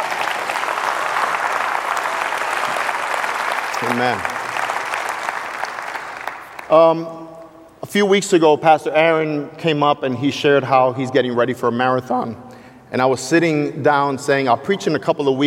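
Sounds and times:
audience applause: 0.0 - 6.7
speech: 3.9 - 4.3, 6.7 - 15.4.

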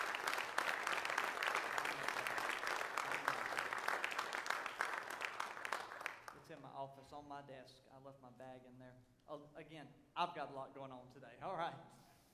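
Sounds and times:
audience hand clapping: 0.0 - 6.5
speech: 6.6 - 12.0.

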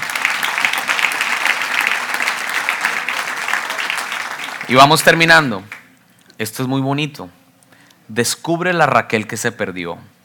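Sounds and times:
audience applause: 0.0 - 5.8
speech: 4.7 - 5.8, 6.4 - 7.4, 8.1 - 10.2.

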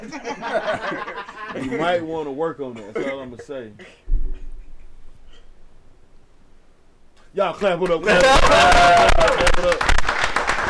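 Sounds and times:
laughter: 0.0 - 3.7, 7.9 - 9.8
speech: 0.1 - 4.0, 7.3 - 10.0
audience clapping: 7.6 - 10.6.

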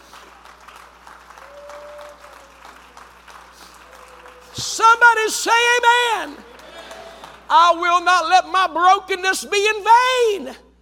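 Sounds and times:
audience clapping: 0.0 - 7.8
speech: 4.6 - 6.5, 7.5 - 10.6.

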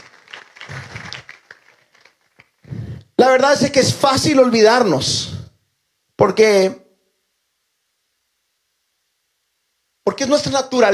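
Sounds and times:
audience applause: 0.0 - 2.6
speech: 3.2 - 5.3, 6.2 - 6.8, 10.2 - 10.9.

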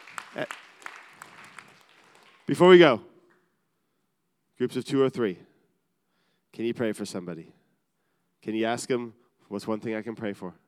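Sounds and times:
audience applause: 0.0 - 2.7
speech: 0.4 - 0.6, 2.5 - 3.1, 4.6 - 5.5, 6.5 - 7.6, 8.4 - 10.6.

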